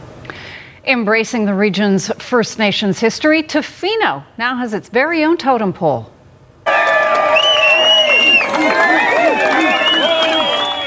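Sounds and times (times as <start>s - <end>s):
speech: 0.8s - 6.1s
large crowd at totem pole raising: 6.6s - 10.8s.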